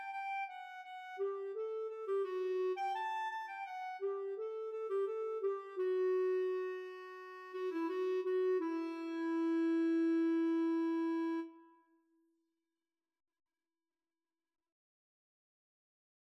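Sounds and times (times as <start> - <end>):
Bb clarinet: 0.0 - 11.9.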